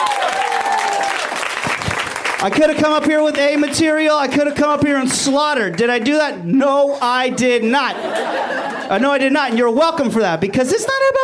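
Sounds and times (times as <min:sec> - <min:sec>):
audience applause for comedian: 0:00.0 - 0:03.8
speech: 0:02.4 - 0:11.2
laughter: 0:07.6 - 0:09.7.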